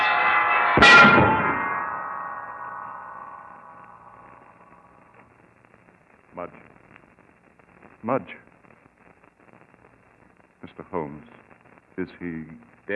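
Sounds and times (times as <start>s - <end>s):
heavy bell crashing down: 0.0s - 5.0s
speech: 0.8s - 1.4s, 8.1s - 8.5s, 10.9s - 11.3s, 12.0s - 12.9s.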